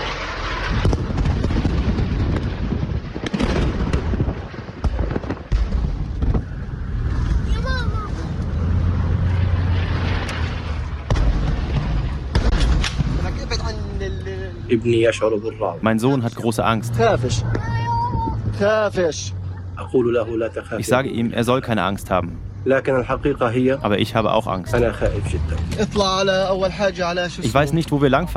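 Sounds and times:
rocket impacts and explosions: 0:00.0 - 0:14.8
speech: 0:14.8 - 0:17.8, 0:18.6 - 0:28.3.

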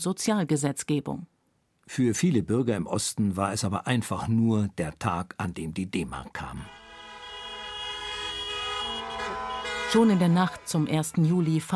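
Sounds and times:
speech: 0:00.0 - 0:06.8, 0:09.9 - 0:11.7
car horns honking in motorcade: 0:06.6 - 0:11.7
low rumble of traffic: 0:06.6 - 0:11.7.

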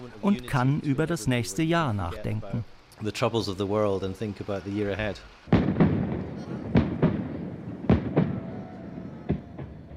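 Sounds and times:
speech: 0:00.1 - 0:05.7
fireworks exploding: 0:05.5 - 0:09.9.

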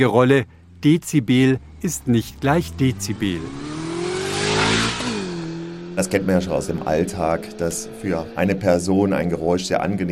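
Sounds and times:
speech: 0:00.0 - 0:03.8, 0:06.0 - 0:10.1
motorcycle engine revving: 0:00.5 - 0:10.0.

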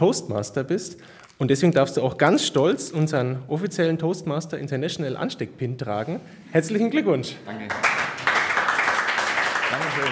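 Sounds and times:
speech: 0:00.0 - 0:08.0, 0:09.8 - 0:10.1
audience clapping: 0:07.7 - 0:10.1.

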